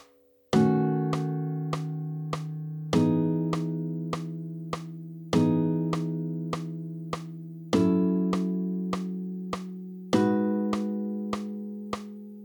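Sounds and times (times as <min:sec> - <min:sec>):
four-voice jazz chords with root on the D string: 0:00.5 - 0:12.0.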